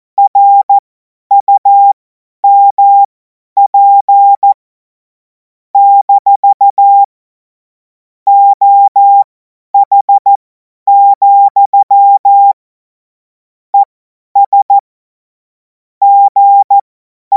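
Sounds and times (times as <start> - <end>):
CW Morse code beeps: 0.2 - 4.6, 5.8 - 7.1, 8.3 - 12.6, 13.8 - 14.8, 16.0 - 17.3.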